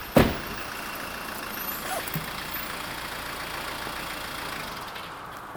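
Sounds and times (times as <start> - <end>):
lorry engine driving on the M4 motorway: 0.0 - 5.4.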